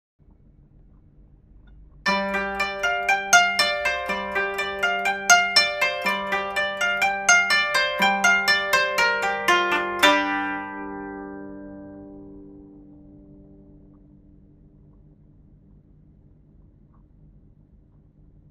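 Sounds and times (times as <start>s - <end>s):
koto: 2.1s - 14.4s.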